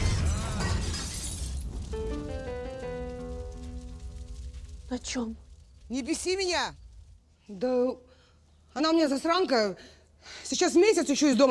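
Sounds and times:
car exploding: 0:00.0 - 0:07.2
shattering and crashing debris: 0:00.0 - 0:07.2
speech: 0:04.9 - 0:06.8, 0:07.5 - 0:08.1, 0:08.8 - 0:11.4.

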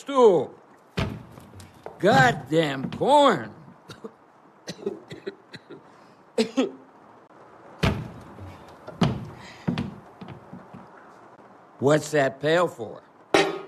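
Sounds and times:
speech: 0:00.0 - 0:00.6, 0:02.0 - 0:03.6, 0:06.4 - 0:06.8, 0:11.8 - 0:13.0
wooden milking stool knocking and scuffing as it is carried in: 0:01.0 - 0:03.1, 0:07.8 - 0:10.9.

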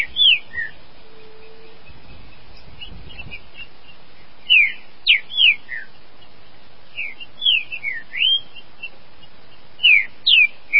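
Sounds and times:
green-winged saltator (trinca-ferro) singing in the bush: 0:00.0 - 0:03.7, 0:04.5 - 0:05.9, 0:07.0 - 0:09.0, 0:09.8 - 0:10.7.

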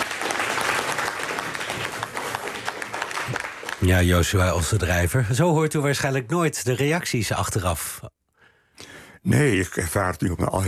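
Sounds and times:
audience clapping for a guest at a national remembrance event: 0:00.0 - 0:04.9
speech: 0:03.8 - 0:08.1, 0:09.2 - 0:10.6.

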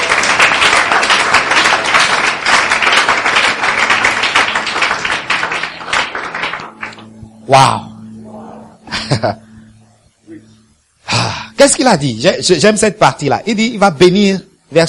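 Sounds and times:
church congregation applauding during a French-language service: 0:00.0 - 0:07.3
speech: 0:09.2 - 0:09.4, 0:11.6 - 0:14.8.

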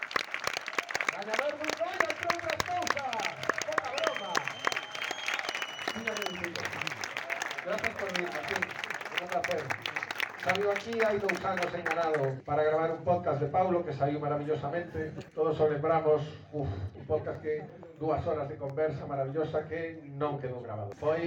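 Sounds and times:
audience applause: 0:00.0 - 0:12.4
speech: 0:01.2 - 0:01.8, 0:07.7 - 0:21.2.

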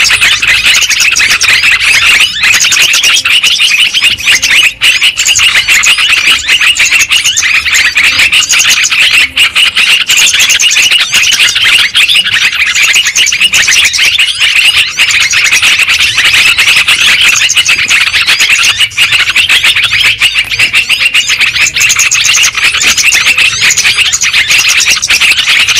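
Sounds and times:
lovebirds chattering: 0:00.0 - 0:25.7.

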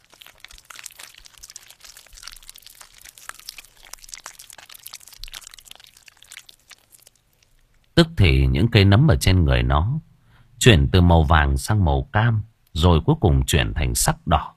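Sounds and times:
monster crunching and tearing a corpse: 0:00.0 - 0:08.0
speech: 0:08.0 - 0:14.5.

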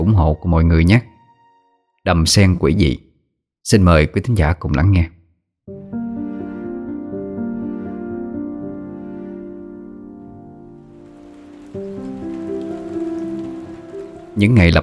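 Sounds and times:
speech: 0:00.0 - 0:01.1, 0:02.0 - 0:05.2, 0:14.4 - 0:14.8
heavy rain pouring down: 0:10.6 - 0:14.8.

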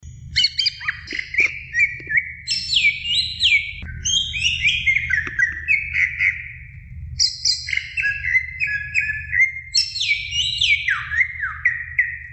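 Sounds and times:
Oriental magpie-robin song of rich whistles: 0:00.3 - 0:12.3.

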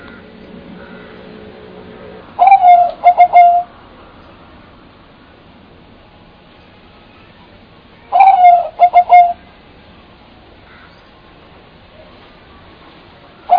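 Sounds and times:
bird call: 0:02.4 - 0:03.7, 0:08.0 - 0:09.4.

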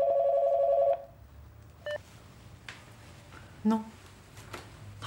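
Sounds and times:
telephone in a florist's shop at a cemetery entrance ringing: 0:00.0 - 0:01.1
speech: 0:03.6 - 0:04.0.

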